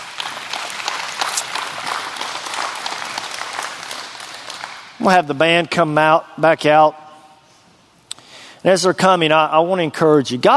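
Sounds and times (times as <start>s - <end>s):
audience hand clapping: 0.0s - 5.3s
speech: 5.0s - 7.0s, 8.6s - 10.5s.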